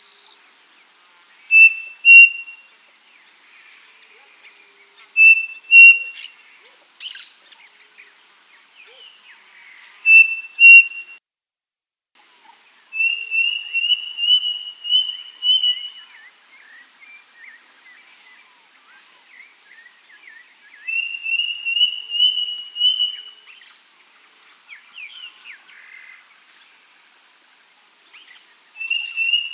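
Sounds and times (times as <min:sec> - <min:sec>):
bird thin whistled calls: 0:01.5 - 0:02.6, 0:05.2 - 0:06.3, 0:10.1 - 0:11.2, 0:13.0 - 0:16.0, 0:20.8 - 0:23.3, 0:28.8 - 0:29.5.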